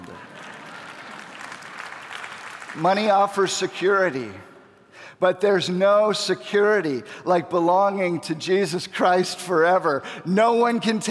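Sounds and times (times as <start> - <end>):
audience applause: 0.0 - 3.1
speech: 2.8 - 4.5, 5.2 - 11.0.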